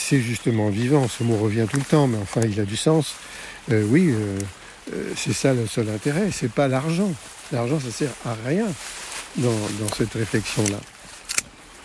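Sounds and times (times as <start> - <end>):
speech: 0.1 - 10.9
pruning shears snipping: 9.6 - 11.6.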